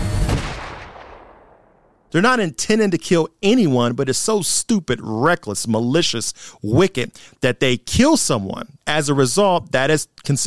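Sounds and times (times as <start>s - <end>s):
gunshots: 0.2s - 2.1s
speech: 2.1s - 10.4s.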